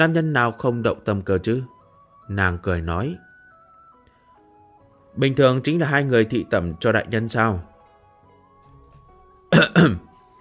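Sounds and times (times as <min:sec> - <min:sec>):
speech: 0:00.0 - 0:01.7, 0:02.3 - 0:03.2, 0:05.2 - 0:07.7, 0:09.5 - 0:10.1
man clearing throat with a short cough: 0:09.5 - 0:10.1.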